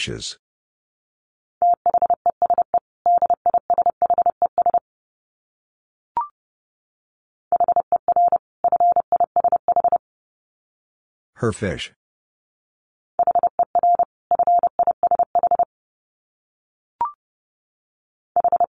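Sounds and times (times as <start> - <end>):
speech: 0.0 - 0.4, 11.4 - 12.0
Morse code beeps: 1.6 - 4.8, 7.5 - 10.0, 13.2 - 15.7, 18.4 - 18.7.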